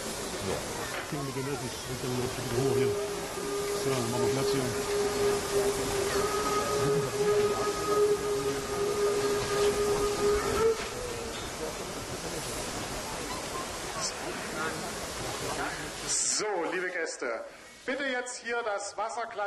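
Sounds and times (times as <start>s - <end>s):
locomotive 3510-97 moving onto turntable: 0.0s - 17.0s
speech: 0.5s - 6.4s, 14.1s - 19.4s.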